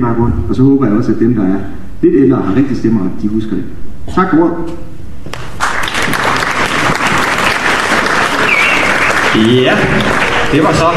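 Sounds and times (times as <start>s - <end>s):
speech: 0.0s - 5.4s, 9.4s - 10.9s
audience applause: 5.5s - 10.9s.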